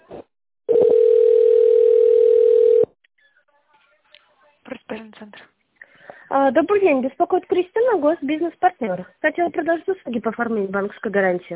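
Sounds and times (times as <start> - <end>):
telephone tone while a call is transferred to an operator: 0.7 - 2.9
speech: 6.5 - 11.5.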